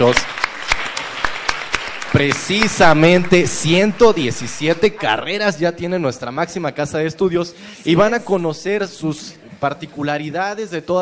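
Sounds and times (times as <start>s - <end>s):
speech: 0.0s - 0.3s, 2.2s - 11.0s
audience applause: 0.0s - 5.3s.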